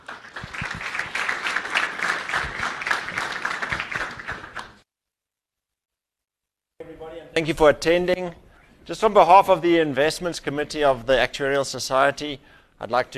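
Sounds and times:
crowd applause: 0:00.0 - 0:04.8
speech: 0:07.4 - 0:13.1.

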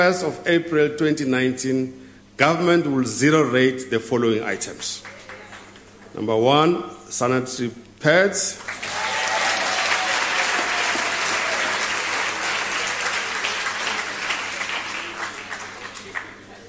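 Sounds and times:
speech: 0:00.0 - 0:05.2, 0:06.2 - 0:08.9
audience applause: 0:08.6 - 0:16.6.

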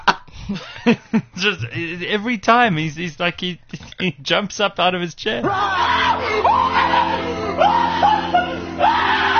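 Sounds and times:
speech: 0:00.5 - 0:07.1
person imitating a startled scream: 0:05.4 - 0:09.3.

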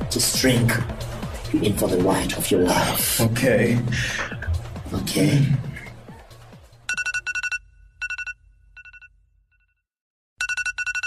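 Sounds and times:
speech: 0:00.1 - 0:05.7
alarm ringing: 0:06.9 - 0:09.7, 0:10.4 - 0:11.0.

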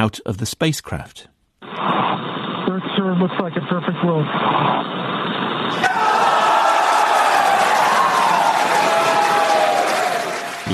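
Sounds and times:
speech: 0:00.0 - 0:02.3, 0:03.0 - 0:05.1, 0:05.7 - 0:06.4
crowd cheering and clapping in a mission control room: 0:05.7 - 0:10.7.

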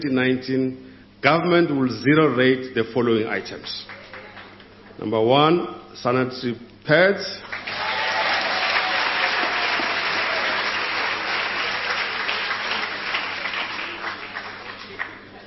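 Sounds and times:
speech: 0:00.0 - 0:04.0, 0:05.0 - 0:07.8
audience applause: 0:03.9 - 0:04.6, 0:07.4 - 0:15.4.

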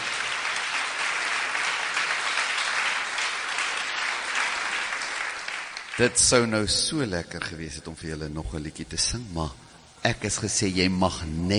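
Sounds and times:
crowd applauding: 0:00.0 - 0:06.5
speech: 0:06.0 - 0:11.5.

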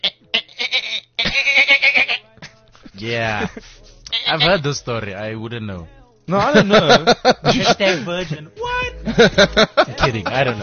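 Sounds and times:
voice imitating a dolphin's squeal: 0:00.0 - 0:02.2, 0:04.1 - 0:04.6
laughter: 0:01.2 - 0:04.5, 0:06.3 - 0:10.6
speech: 0:03.0 - 0:03.7, 0:04.3 - 0:10.6.

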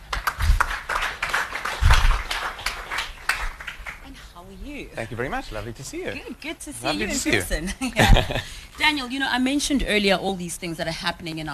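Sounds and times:
audience round of applause: 0:00.0 - 0:04.1
speech: 0:04.9 - 0:11.5
laughter: 0:07.0 - 0:08.6.

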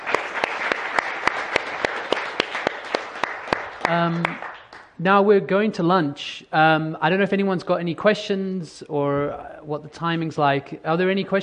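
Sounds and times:
audience applause: 0:00.0 - 0:04.8
speech: 0:03.9 - 0:11.4.

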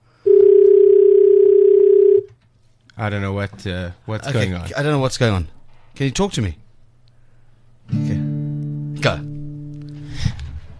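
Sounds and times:
telephone dial tone during an attempt to phone someone: 0:00.3 - 0:02.3
speech: 0:03.0 - 0:06.6, 0:09.0 - 0:09.3.

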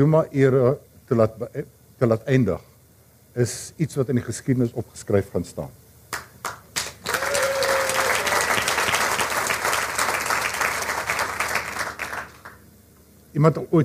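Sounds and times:
speech: 0:00.0 - 0:02.7, 0:03.4 - 0:05.8, 0:13.3 - 0:13.8
audience applauding investigative journalists at a speech: 0:06.1 - 0:12.6.

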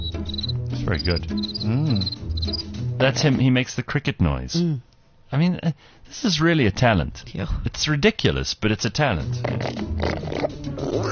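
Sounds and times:
speech: 0:00.9 - 0:11.0
man's voice imitating a warthog: 0:09.4 - 0:11.0.

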